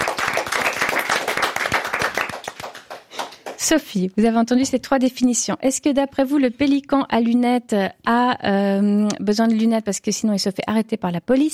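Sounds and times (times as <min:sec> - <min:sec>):
audience clapping: 0:00.0 - 0:03.8
speech: 0:03.7 - 0:11.5.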